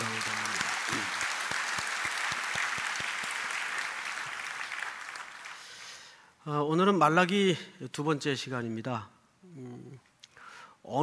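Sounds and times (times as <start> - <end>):
audience applauding: 0.0 - 6.0
speech: 6.5 - 9.8.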